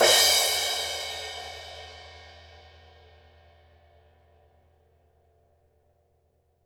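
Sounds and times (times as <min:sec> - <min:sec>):
cymbals: 0:00.0 - 0:03.4.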